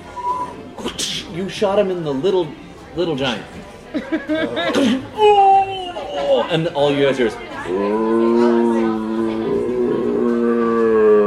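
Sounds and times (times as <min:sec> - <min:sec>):
speech: 0:01.4 - 0:08.2
laughter: 0:03.9 - 0:06.6
voice imitating a foghorn: 0:07.7 - 0:11.2.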